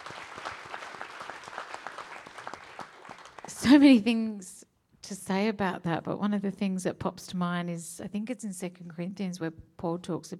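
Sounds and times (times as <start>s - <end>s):
audience clapping: 0.0s - 4.0s
speech: 3.6s - 10.3s.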